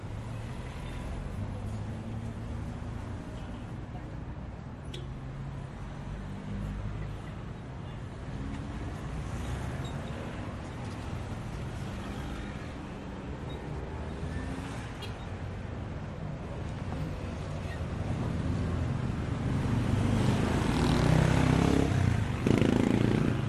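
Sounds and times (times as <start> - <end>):
street traffic: 0.0 - 23.4
motorcycle: 18.2 - 23.4.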